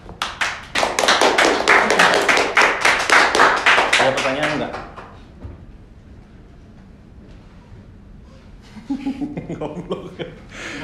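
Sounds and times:
hand clapping: 0:00.0 - 0:05.2
laughter: 0:08.7 - 0:10.8.

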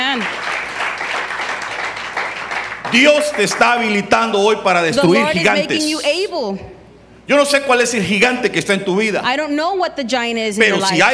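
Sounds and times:
audience applause: 0:00.0 - 0:04.3
speech: 0:02.9 - 0:06.7, 0:07.3 - 0:11.1.

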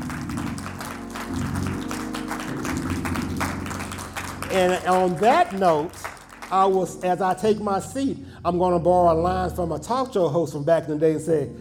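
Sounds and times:
audience hand clapping: 0:00.0 - 0:07.5
speech: 0:04.5 - 0:11.5.

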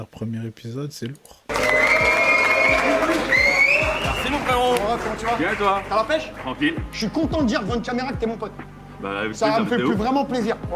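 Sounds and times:
speech: 0:00.0 - 0:10.7
whoops or whistles: 0:01.5 - 0:04.4
crowd cheering and clapping: 0:01.5 - 0:06.6.

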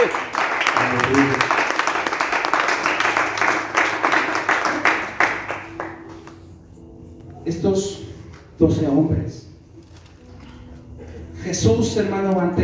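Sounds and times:
audience applause: 0:00.0 - 0:06.1
speech: 0:01.0 - 0:01.6, 0:07.6 - 0:08.0, 0:08.6 - 0:09.4, 0:11.5 - 0:12.6.

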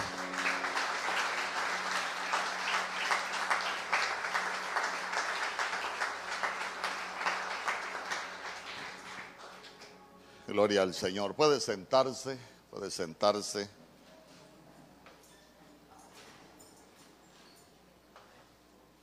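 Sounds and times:
audience applauding: 0:00.0 - 0:10.0
speech: 0:10.6 - 0:13.8.

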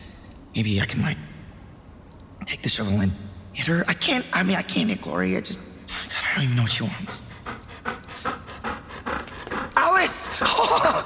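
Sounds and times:
speech: 0:00.6 - 0:01.4, 0:02.4 - 0:07.3
dog: 0:07.0 - 0:10.8.

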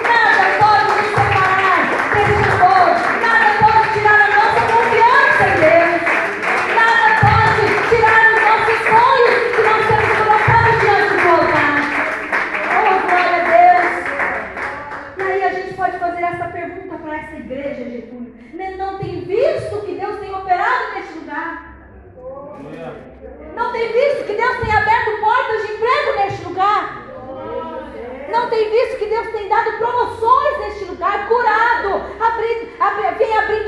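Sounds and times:
audience applauding and clapping: 0:00.0 - 0:15.9
music: 0:00.0 - 0:17.6, 0:18.4 - 0:33.6
loud voices: 0:00.0 - 0:33.6.

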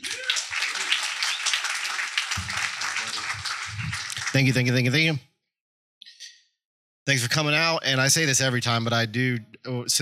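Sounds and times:
audience applause: 0:00.0 - 0:05.0
speech: 0:04.4 - 0:05.3, 0:07.1 - 0:09.9.

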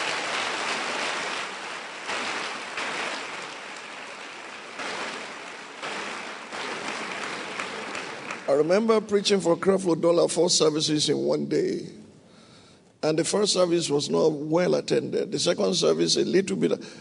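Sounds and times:
audience applauding: 0:00.0 - 0:08.9
speech: 0:08.5 - 0:12.0, 0:13.0 - 0:16.9.

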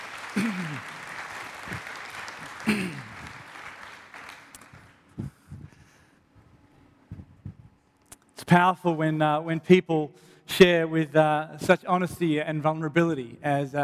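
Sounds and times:
audience applause: 0:00.0 - 0:05.2
speech: 0:08.5 - 0:13.8.

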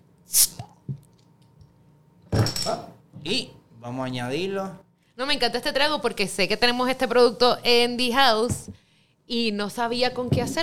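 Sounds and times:
drink bottle opening: 0:00.3 - 0:01.2
speech: 0:02.7 - 0:10.6.

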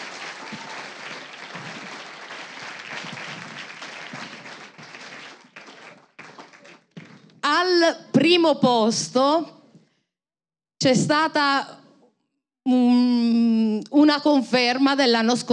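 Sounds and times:
audience applause: 0:00.0 - 0:07.3
speech: 0:07.8 - 0:09.6, 0:10.8 - 0:11.8, 0:12.7 - 0:15.5.

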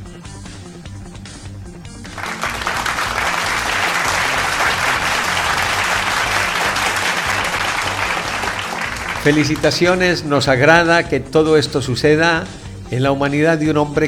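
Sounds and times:
applause: 0:02.0 - 0:10.0
speech: 0:09.2 - 0:14.0.

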